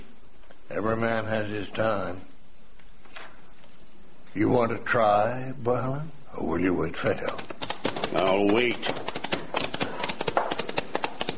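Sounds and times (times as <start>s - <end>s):
speech: 0.7s - 2.3s, 4.4s - 7.5s, 8.1s - 9.0s
horses' hooves clattering along a moonlit street: 7.2s - 11.3s.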